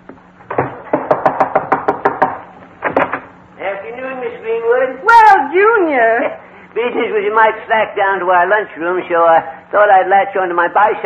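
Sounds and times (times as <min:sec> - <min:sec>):
visiting detective knocking on a door: 0:00.5 - 0:03.2
speech: 0:03.9 - 0:11.0.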